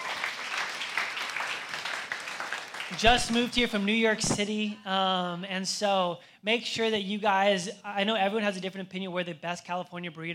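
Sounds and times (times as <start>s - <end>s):
audience applause: 0.0s - 3.5s
speech: 2.9s - 10.3s.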